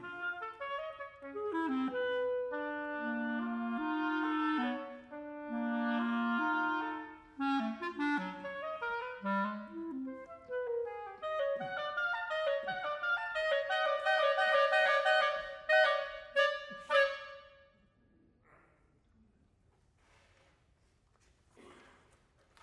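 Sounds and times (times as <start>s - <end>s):
oboe and clarinet duo playing andante affettuoso: 0.0s - 17.8s.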